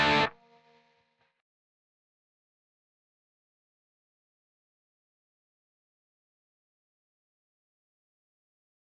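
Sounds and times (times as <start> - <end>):
background guitar: 0.0 - 1.3.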